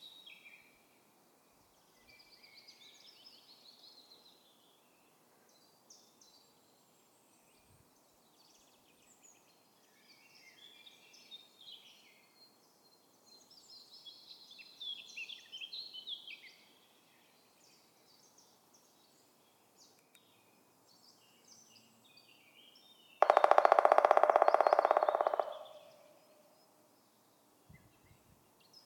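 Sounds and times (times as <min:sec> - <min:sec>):
black woodpecker drumming: 0:23.2 - 0:26.4.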